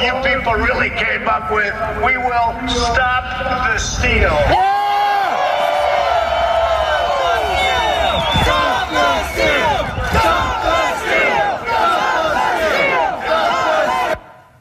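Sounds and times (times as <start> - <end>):
speech: 0.1 - 4.7
large crowd chanting in unison at a rally: 5.1 - 14.5.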